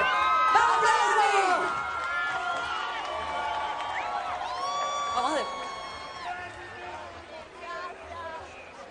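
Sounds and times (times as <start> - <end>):
crowd applauding: 0.0 - 8.9.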